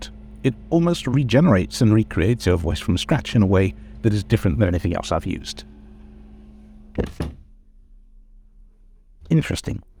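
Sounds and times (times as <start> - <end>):
speech: 0.4 - 5.7, 7.0 - 7.4, 9.3 - 9.9
wooden cupboard door thunks: 6.9 - 7.6.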